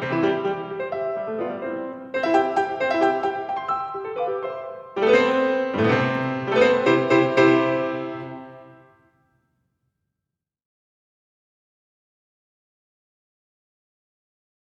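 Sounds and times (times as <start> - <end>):
piano sonatina: 0.0 - 9.2.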